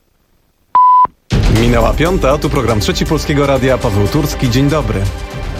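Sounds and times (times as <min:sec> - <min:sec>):
radio time signal pips: 0:00.8 - 0:01.1
speech: 0:01.7 - 0:05.3.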